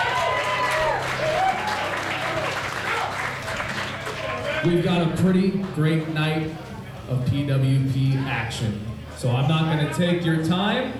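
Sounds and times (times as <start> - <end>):
audience applause: 0.0 - 4.7
speech: 4.6 - 10.9.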